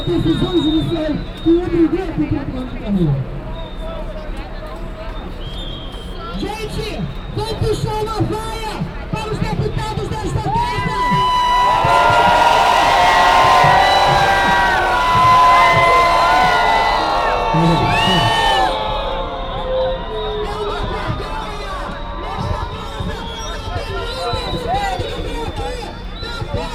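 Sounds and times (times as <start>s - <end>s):
street demonstration in Brazil: 0.0s - 26.7s.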